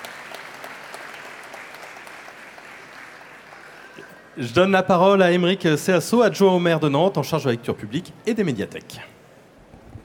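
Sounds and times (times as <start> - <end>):
audience applause: 0.0 - 4.0
speech: 4.0 - 9.1.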